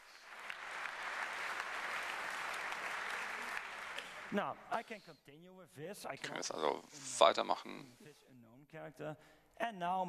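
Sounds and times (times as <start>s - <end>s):
applause in a hall: 0.0s - 4.8s
speech: 4.3s - 10.0s.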